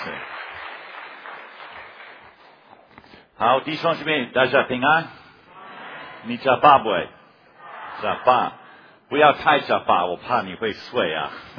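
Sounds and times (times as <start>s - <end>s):
church congregation clapping to welcome a pastor: 0.0s - 3.2s
speech: 3.4s - 5.2s, 6.2s - 7.2s, 8.0s - 11.5s.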